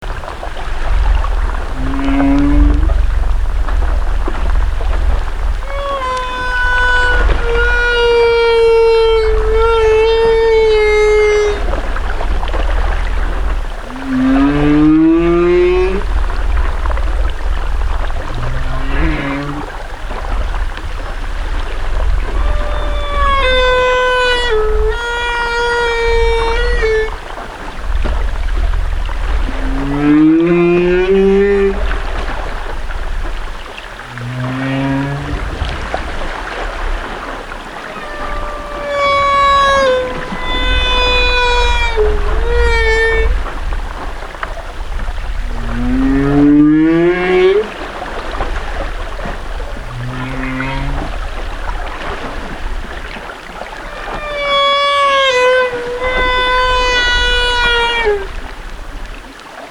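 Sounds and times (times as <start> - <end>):
whale song: 0.0 - 59.6.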